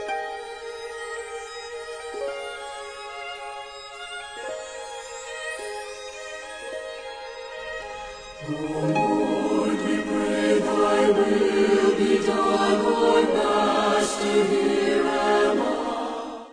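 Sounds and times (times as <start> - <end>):
orchestra playing: 8.4 - 12.7
choir singing: 8.4 - 16.5.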